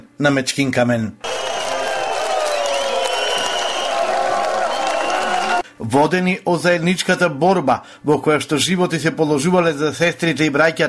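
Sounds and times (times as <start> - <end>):
speech: 0.2 - 1.3, 5.8 - 10.8
crowd whistling at Ilinden celebration on Mechkin Kamen: 1.2 - 5.6.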